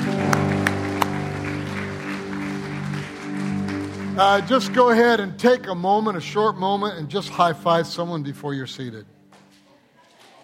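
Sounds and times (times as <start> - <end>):
audience applause: 0.0 - 5.8
sustained organ or keyboard chords: 0.0 - 9.3
speech: 4.2 - 9.2.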